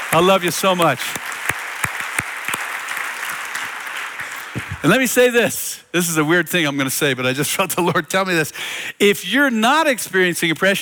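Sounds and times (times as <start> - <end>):
crowd applauding: 0.0 - 5.3
speech: 0.1 - 1.3, 4.8 - 10.8.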